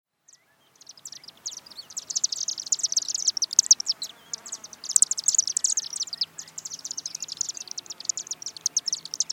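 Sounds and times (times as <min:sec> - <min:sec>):
chimney swift chittering calls: 0:00.8 - 0:09.3.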